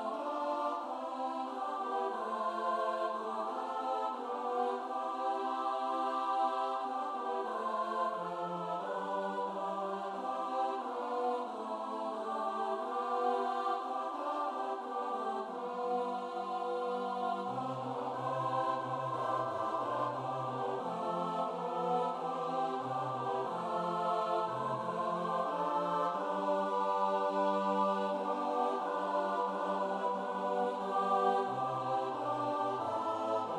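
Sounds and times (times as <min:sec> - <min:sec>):
SATB choir singing: 0:00.0 - 0:33.5.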